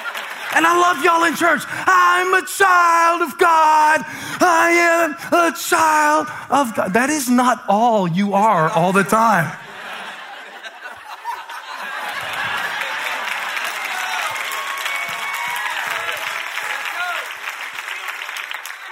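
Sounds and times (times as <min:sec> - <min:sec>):
audience clapping: 0:00.0 - 0:02.4, 0:11.6 - 0:18.9
laughter: 0:00.0 - 0:02.4, 0:09.2 - 0:14.1
speech: 0:00.5 - 0:09.6.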